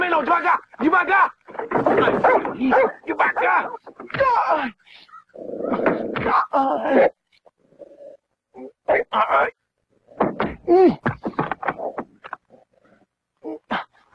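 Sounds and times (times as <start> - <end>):
speech: 0.2 - 7.2, 8.6 - 9.6, 10.2 - 11.3
dog barking and whimpering: 2.1 - 3.5.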